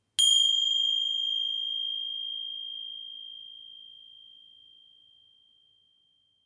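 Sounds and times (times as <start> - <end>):
Tibetan bell single lingering ring: 0.2 - 3.8.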